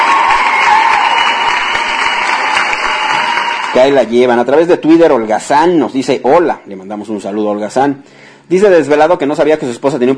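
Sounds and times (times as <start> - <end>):
applause: 0.0 - 4.0
speech: 3.8 - 10.1.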